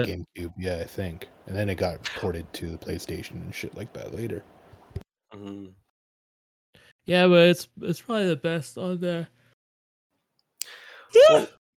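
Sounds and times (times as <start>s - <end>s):
speech: 0.0s - 5.8s, 7.1s - 9.4s, 10.7s - 11.6s
person yawning: 5.4s - 5.7s, 10.9s - 11.5s.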